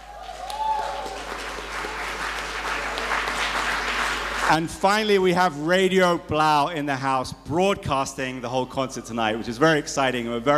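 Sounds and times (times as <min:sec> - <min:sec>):
audience applause: 0:00.0 - 0:05.1
speech: 0:04.5 - 0:10.5.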